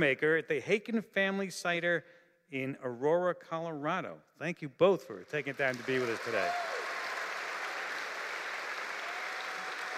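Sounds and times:
speech: 0.0 - 6.7
audience applause: 5.4 - 9.9.

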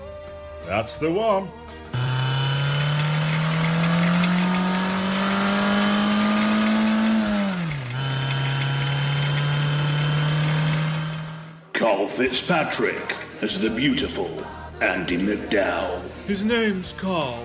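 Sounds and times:
speech: 0.7 - 2.0, 11.8 - 17.4
car engine accelerating: 2.0 - 11.6.

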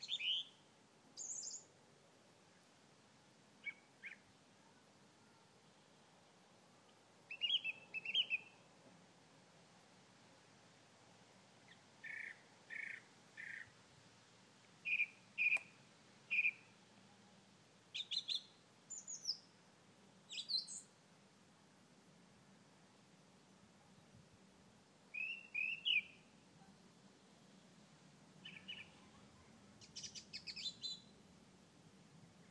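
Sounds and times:
birdsong on a quiet evening: 0.0 - 0.6, 7.3 - 8.6, 11.7 - 13.7, 14.8 - 16.7, 18.0 - 19.5, 20.3 - 20.9, 25.2 - 26.3, 28.4 - 29.1, 29.8 - 31.1.

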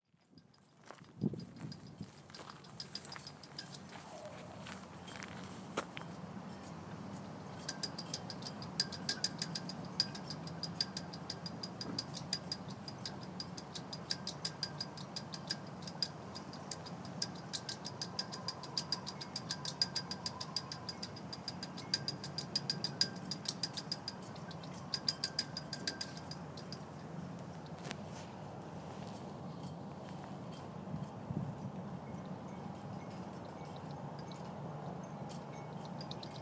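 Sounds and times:
wind in sails at Warsash: 0.1 - 36.4.

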